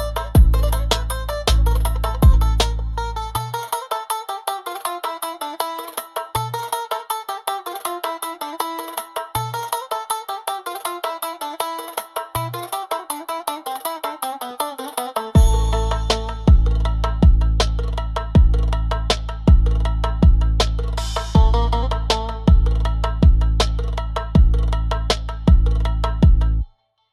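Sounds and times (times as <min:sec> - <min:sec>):
Middle Eastern drum beat: 0:00.0 - 0:26.6.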